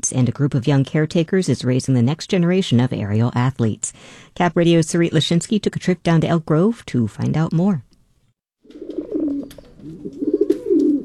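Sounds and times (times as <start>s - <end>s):
speech: 0.0s - 7.9s
pigeons cooing: 8.6s - 11.0s.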